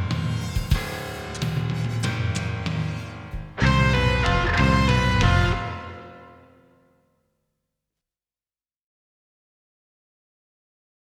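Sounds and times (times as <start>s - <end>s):
rhythm track: 0.4s - 6.4s.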